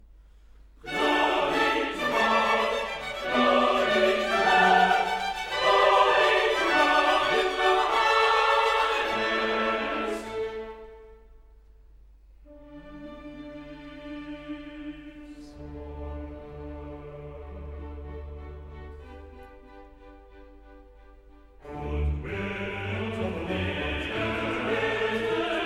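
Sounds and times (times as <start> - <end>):
chorus singing: 0.8 - 11.2, 13.1 - 18.3, 21.6 - 25.6.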